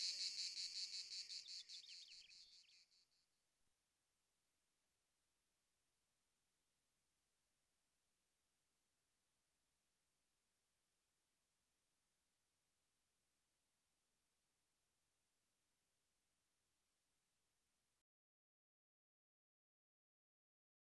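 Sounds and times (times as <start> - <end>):
common chaffinch singing: 0.0 - 2.8.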